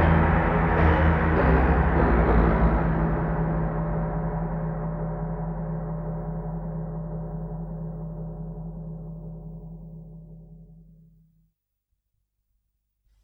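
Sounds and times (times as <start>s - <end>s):
interlude music: 0.0s - 5.8s.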